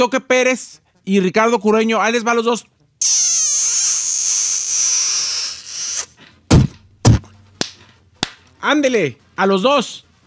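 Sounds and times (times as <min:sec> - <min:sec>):
speech: 0:00.0 - 0:03.5, 0:08.6 - 0:10.0
long wet hissing smooch-and-spit sound effect: 0:03.0 - 0:06.2
sharp loud spank slaps: 0:06.5 - 0:08.5.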